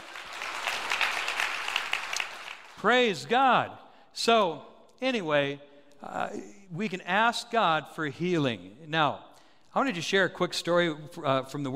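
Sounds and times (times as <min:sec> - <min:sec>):
audience clapping: 0:00.0 - 0:03.2
speech: 0:02.8 - 0:11.7.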